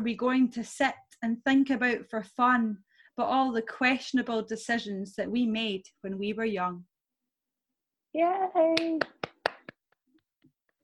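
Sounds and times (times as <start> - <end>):
speech: 0.0 - 6.9, 8.1 - 9.2
person clapping hands: 8.7 - 10.5.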